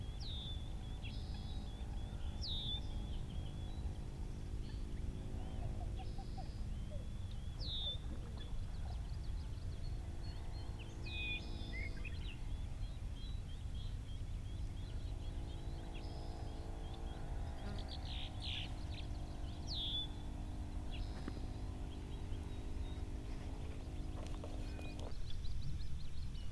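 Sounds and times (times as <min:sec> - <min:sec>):
birds chirping: 0:00.0 - 0:26.5.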